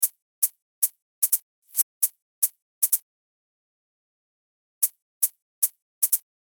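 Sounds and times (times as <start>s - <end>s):
hi-hat: 0.0s - 3.0s, 4.8s - 6.4s.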